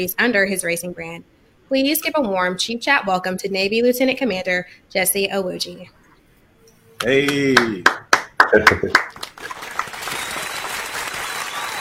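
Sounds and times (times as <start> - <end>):
speech: 0.0 - 6.0, 7.0 - 9.3
audience applause: 7.2 - 11.7.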